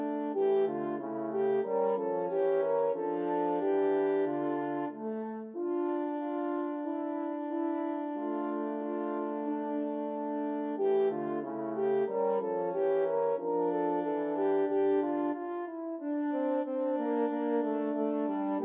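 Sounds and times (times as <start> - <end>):
French horn trio playing a spiritual: 0.1 - 18.6.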